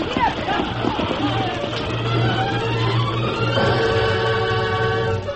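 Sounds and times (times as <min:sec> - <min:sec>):
hooves clip-clopping: 0:00.0 - 0:03.7
horse-drawn wagons rolling along: 0:00.0 - 0:05.0
voices calling out: 0:00.0 - 0:05.2.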